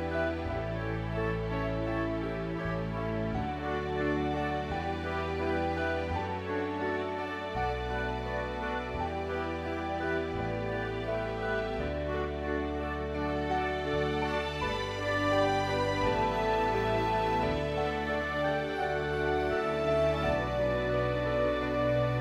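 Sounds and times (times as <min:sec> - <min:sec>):
instrumental hymn: 0:00.0 - 0:22.1.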